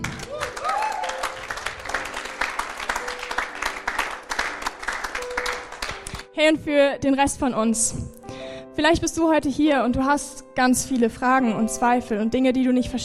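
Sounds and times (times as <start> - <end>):
crowd applauding: 0.0 - 6.3
cheers and voices: 0.3 - 1.2
speech: 6.4 - 8.0, 8.8 - 13.0.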